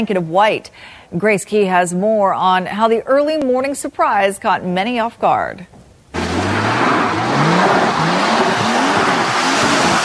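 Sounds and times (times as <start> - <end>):
speech: 0.0 - 5.8
car tires spinning on a hail-covered road: 6.1 - 10.0.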